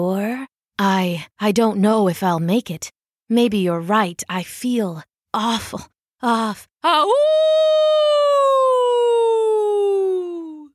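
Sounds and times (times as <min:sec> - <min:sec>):
speech: 0:00.0 - 0:08.8
human voice imitating a wolf howl: 0:06.8 - 0:10.7.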